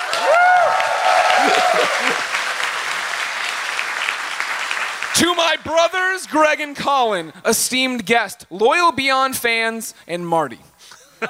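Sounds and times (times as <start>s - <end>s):
audience clapping: 0.0s - 5.8s
sharp whistles and cheers: 0.1s - 2.2s
speech: 5.4s - 11.2s.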